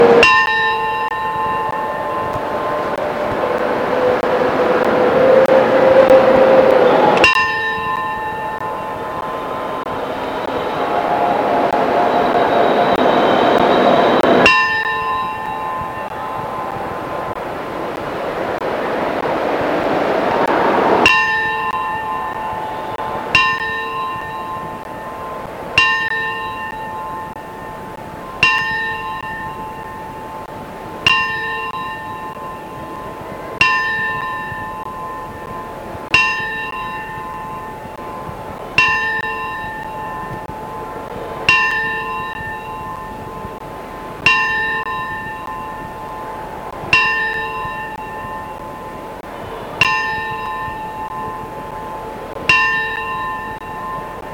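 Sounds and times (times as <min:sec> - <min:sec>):
bell: 0:00.0 - 0:19.3, 0:20.4 - 0:54.3.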